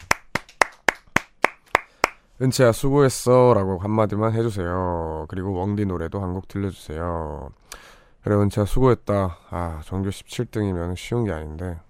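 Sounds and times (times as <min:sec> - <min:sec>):
hand clapping: 0:00.0 - 0:02.3
speech: 0:02.4 - 0:11.8.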